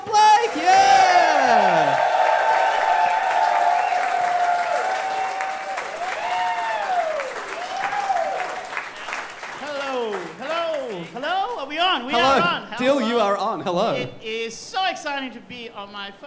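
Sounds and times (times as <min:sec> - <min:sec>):
audience applause: 0:00.0 - 0:12.3
speech: 0:13.6 - 0:16.2.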